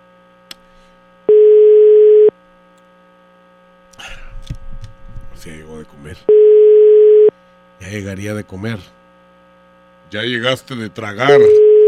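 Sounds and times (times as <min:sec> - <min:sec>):
low electrical hum: 0:00.0 - 0:11.8
telephone ringback tone during a call: 0:01.3 - 0:02.3, 0:06.3 - 0:07.3, 0:11.4 - 0:11.8
speech: 0:05.4 - 0:06.6, 0:07.9 - 0:09.0, 0:10.1 - 0:11.6.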